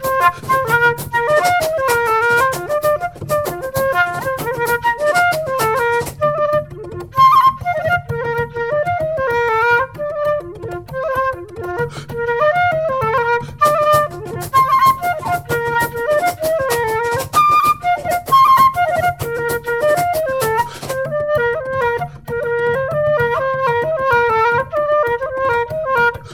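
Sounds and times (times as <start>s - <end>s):
fast hard shoe dancing: 0.0s - 6.3s, 13.5s - 21.0s
F flute: 0.0s - 26.3s
bodhran: 0.0s - 26.3s.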